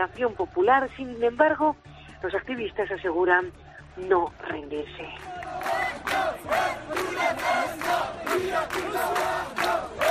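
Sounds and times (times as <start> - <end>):
speech: 0.0 - 9.7
large crowd of protesters chanting in the street: 5.2 - 10.1.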